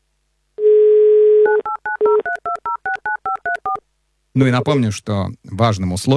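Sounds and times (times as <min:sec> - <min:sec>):
touch-tone dialing beeps: 0:01.5 - 0:03.8
speech: 0:04.4 - 0:06.1.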